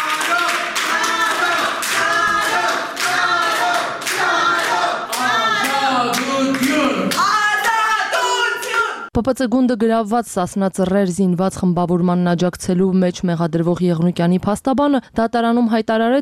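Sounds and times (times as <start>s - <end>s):
rhythmic clapping in a crowded courtroom: 0.0s - 7.8s
crowd chanting in a crowded courtroom: 0.0s - 9.1s
speech: 9.2s - 16.2s.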